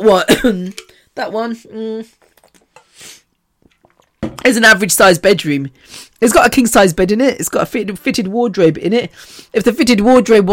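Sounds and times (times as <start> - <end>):
speech: 0.0 - 2.3, 4.4 - 10.5
person drinking water: 2.1 - 4.4.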